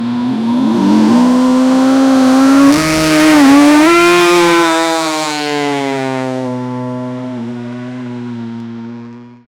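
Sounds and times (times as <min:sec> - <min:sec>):
Formula One race car revving: 0:00.0 - 0:09.4.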